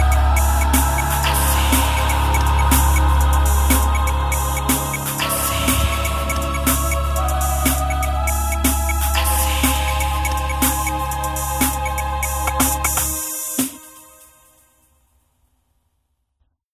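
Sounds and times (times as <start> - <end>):
bassline: 0.0 - 13.2.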